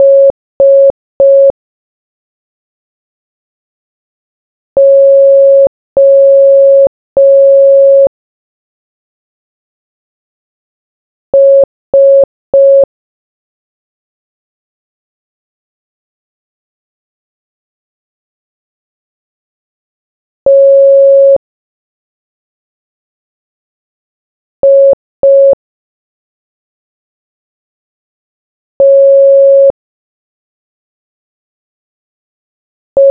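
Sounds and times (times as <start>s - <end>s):
morse code beeps: 0.0s - 1.5s, 4.8s - 8.1s, 11.4s - 12.9s, 20.5s - 21.4s, 24.6s - 25.6s, 28.8s - 29.7s.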